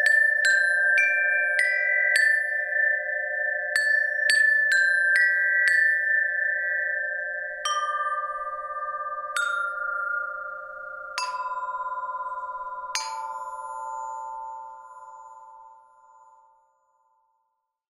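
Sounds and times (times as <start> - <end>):
beating chimes: 0.0 - 17.1.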